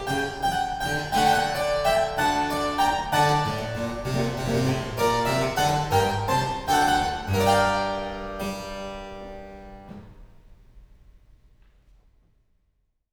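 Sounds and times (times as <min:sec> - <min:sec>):
gigue: 0:00.0 - 0:09.6.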